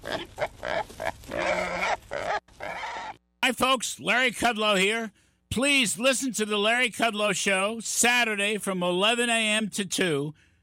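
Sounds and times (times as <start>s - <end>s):
wild hogs grunting and squealing: 0.0s - 3.2s
speech: 3.5s - 10.5s.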